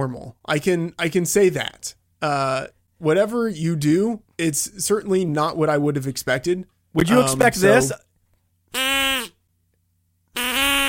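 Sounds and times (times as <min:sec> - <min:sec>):
speech: 0:00.0 - 0:08.1
duck call being blown: 0:08.7 - 0:09.4, 0:10.3 - 0:10.8.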